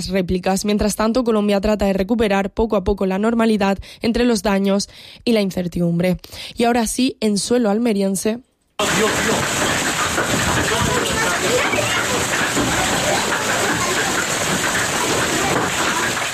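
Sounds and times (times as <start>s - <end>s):
speech: 0.0s - 9.7s
hailstorm: 8.8s - 16.3s.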